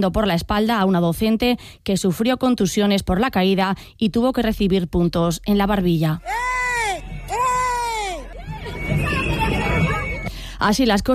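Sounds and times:
speech: 0.0 - 6.6, 10.6 - 11.1
protest crowd shouting: 6.2 - 10.3.

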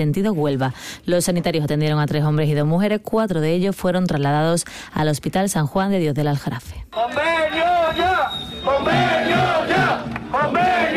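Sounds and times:
speech: 0.0 - 10.9
crowd of protesting workers chanting in unison: 7.0 - 10.9.

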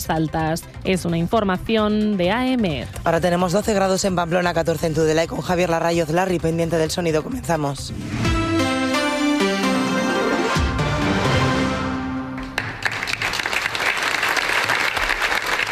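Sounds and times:
speech: 0.0 - 8.3
sustained musical tones: 8.0 - 12.6
large crowd applause at a rally: 12.4 - 15.7.

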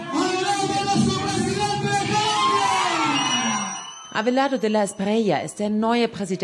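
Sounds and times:
campaign team cheering in Colombia: 0.0 - 5.0
speech: 4.2 - 6.4.

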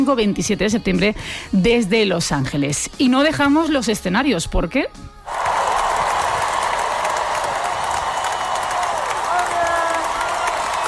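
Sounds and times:
speech: 0.0 - 5.1
concert audience applause and cheering: 5.3 - 10.8.

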